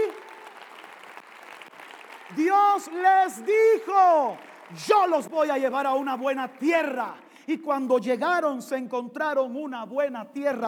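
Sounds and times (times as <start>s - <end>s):
audience applauding: 0.0s - 7.3s
speech: 2.3s - 10.6s.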